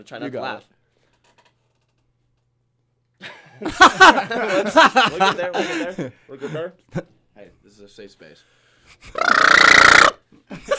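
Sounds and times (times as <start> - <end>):
speech: 0.0 - 0.8, 3.2 - 10.7
laughter: 3.2 - 6.1
person imitating a duck's mating call: 9.1 - 10.2
short voice burst: 9.2 - 10.2.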